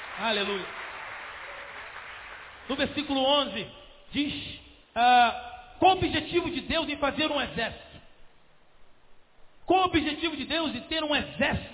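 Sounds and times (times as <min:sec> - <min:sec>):
audience applauding: 0:00.0 - 0:02.8
speech: 0:00.2 - 0:00.8, 0:02.7 - 0:07.9, 0:09.7 - 0:11.7.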